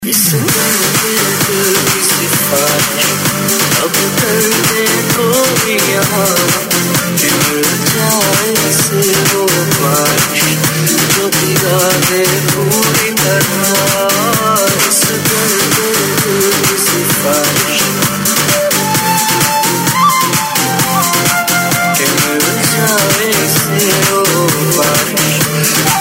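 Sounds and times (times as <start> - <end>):
flute fusion remix: 0.0 - 25.9.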